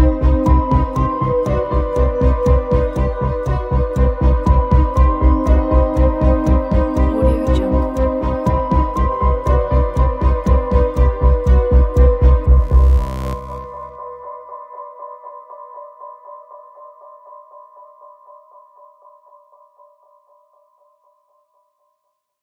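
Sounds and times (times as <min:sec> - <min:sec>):
tension music: 0:00.0 - 0:14.2.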